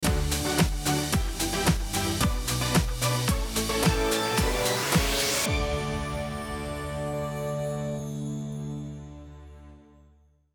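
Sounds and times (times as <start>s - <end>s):
quest end canon music: 0.0s - 9.9s.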